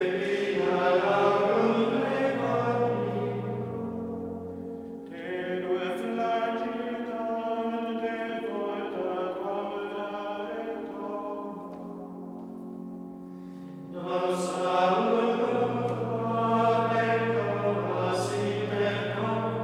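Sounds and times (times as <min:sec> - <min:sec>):
Gregorian male choir chanting: 0:00.0 - 0:12.0, 0:13.9 - 0:19.6.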